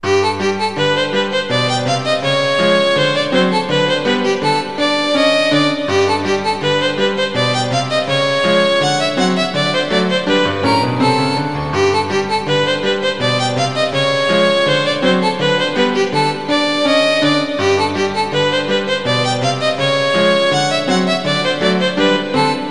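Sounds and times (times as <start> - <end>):
piano: 0.0 - 22.6
violin: 0.0 - 22.6.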